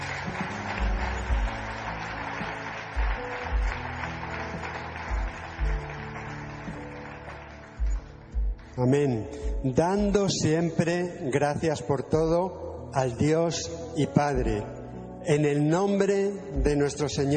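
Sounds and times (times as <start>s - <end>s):
audience applause: 0.0s - 8.8s
sustained music: 0.0s - 17.3s
speech: 8.8s - 17.3s.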